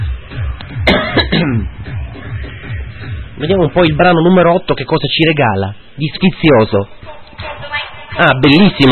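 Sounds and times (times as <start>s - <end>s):
coughing: 0.8s - 1.8s
speech: 1.3s - 1.9s, 3.4s - 7.6s, 8.2s - 8.8s.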